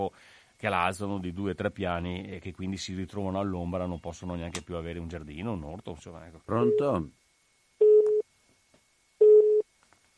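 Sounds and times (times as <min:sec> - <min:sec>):
speech: 0:00.0 - 0:07.2
telephone busy tone after a dropped call: 0:06.5 - 0:07.0, 0:07.8 - 0:08.2, 0:09.2 - 0:09.7.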